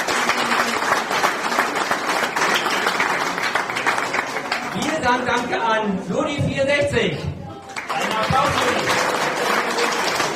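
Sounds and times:
audience applause: 0:00.0 - 0:05.0, 0:07.7 - 0:10.3
speech: 0:05.1 - 0:07.3, 0:08.0 - 0:09.2.

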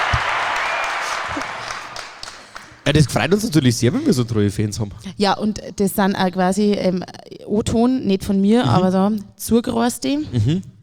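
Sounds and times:
audience applause: 0:00.0 - 0:02.9
speech: 0:02.9 - 0:10.7.

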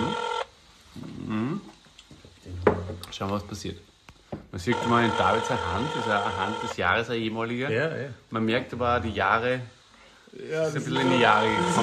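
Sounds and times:
phone ringtone of an outgoing video call: 0:00.0 - 0:00.5, 0:04.7 - 0:06.8, 0:10.9 - 0:11.8
speech: 0:03.1 - 0:03.9, 0:04.5 - 0:09.8, 0:10.4 - 0:11.8.

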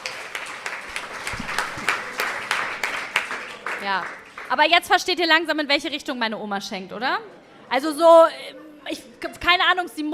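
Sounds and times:
applause: 0:00.0 - 0:04.8
speech: 0:03.8 - 0:10.1.

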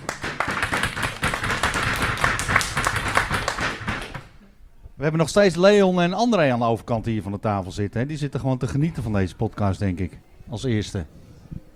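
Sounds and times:
people clapping: 0:00.0 - 0:04.4
speech: 0:05.0 - 0:11.2.

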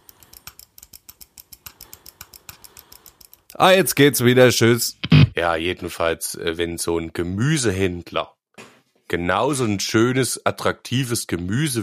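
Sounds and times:
rapid clicking from a leaking tape being pressed: 0:00.0 - 0:03.6
speech: 0:03.6 - 0:08.4, 0:09.1 - 0:11.8.

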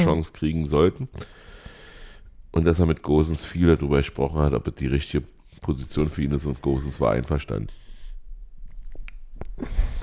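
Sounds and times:
speech: 0:00.0 - 0:01.5, 0:02.5 - 0:07.8, 0:09.6 - 0:10.0
person sneezing: 0:09.6 - 0:10.0
person sniffing: 0:09.6 - 0:10.0.

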